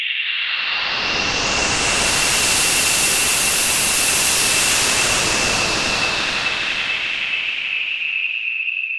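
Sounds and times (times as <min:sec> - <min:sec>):
delayed pink noise: 0:00.1 - 0:08.8.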